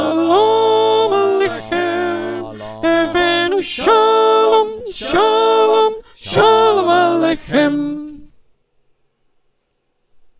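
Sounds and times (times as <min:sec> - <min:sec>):
choir with soprano: 0:00.0 - 0:08.3.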